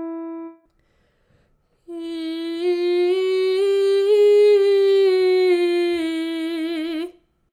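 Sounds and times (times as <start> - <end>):
vocal exercises: 1.8 - 7.2.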